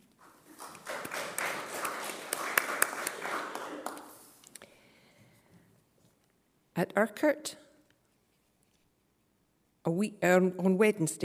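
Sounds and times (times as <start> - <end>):
small audience clapping at a charity fundraising gathering: 0.0 - 4.5
speech: 6.8 - 7.6, 9.9 - 11.2.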